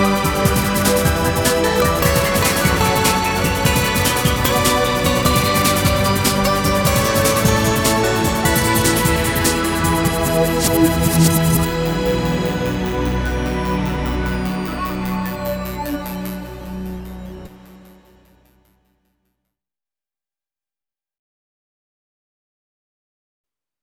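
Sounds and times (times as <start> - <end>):
rhythm track: 0.0 - 18.4.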